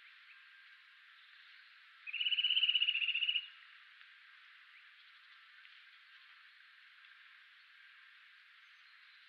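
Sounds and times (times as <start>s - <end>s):
Eurasian nuthatch Sitta europaea piping trill: 2.0s - 3.5s.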